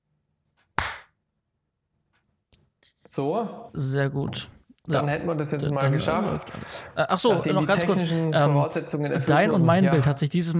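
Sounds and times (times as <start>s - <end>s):
hand clap to sync video: 0.8s - 1.2s
speech: 3.1s - 10.5s.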